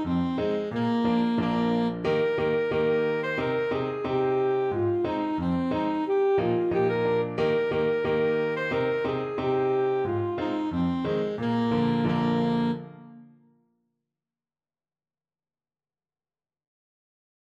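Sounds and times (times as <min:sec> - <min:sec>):
alto saxophone: 0:00.0 - 0:13.5.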